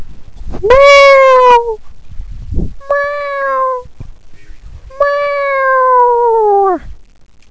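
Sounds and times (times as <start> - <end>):
cat meowing: 0.6 - 1.8, 2.8 - 3.9, 4.9 - 6.8.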